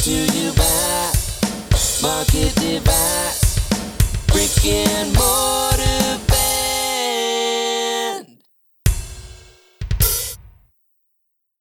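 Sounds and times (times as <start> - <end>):
lead vocals with harmony: 0.0 - 8.4.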